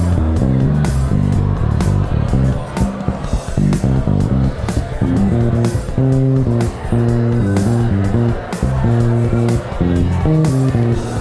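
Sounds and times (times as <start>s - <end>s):
bass guitar improvising: 0.0s - 11.1s
crowd chatter: 0.0s - 11.1s
electronic drum beat: 0.0s - 11.1s.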